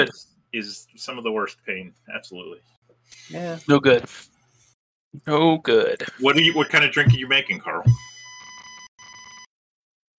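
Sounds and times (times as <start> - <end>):
speech: 0.0 - 4.3, 5.1 - 8.1
electronic beeps: 6.3 - 9.5.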